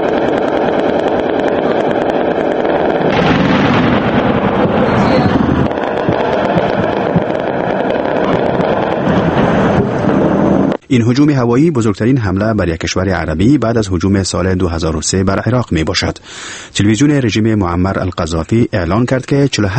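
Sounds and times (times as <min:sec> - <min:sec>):
anti-aircraft machine gun fire in Tripoli: 0:00.0 - 0:10.5
speech: 0:10.9 - 0:19.7.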